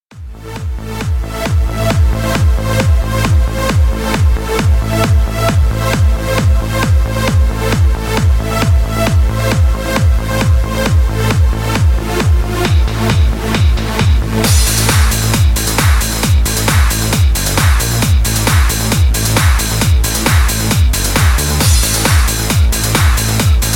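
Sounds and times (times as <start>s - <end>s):
electro music: 0.1s - 23.7s.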